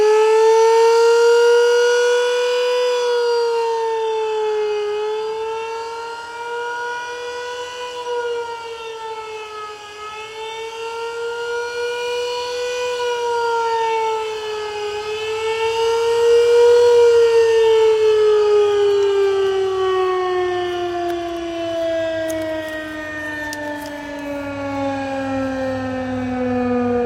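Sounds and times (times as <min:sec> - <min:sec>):
fire rescue siren: 0:00.0 - 0:27.0.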